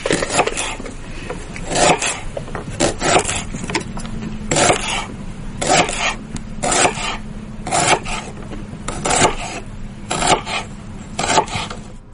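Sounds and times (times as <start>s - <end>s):
knife slicing through dates on a board: 0.1s - 0.8s, 1.7s - 3.5s, 4.5s - 8.3s, 8.9s - 11.8s.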